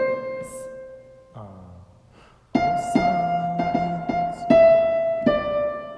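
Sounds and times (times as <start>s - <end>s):
soprano singing: 0.2s - 0.7s, 2.6s - 5.5s.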